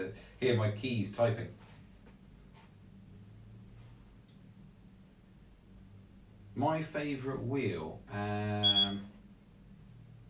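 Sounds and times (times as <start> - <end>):
quiet hiss: 0.0 - 10.2
speech: 0.1 - 1.6, 6.6 - 9.1
electronic device disconnecting tone: 8.6 - 9.0.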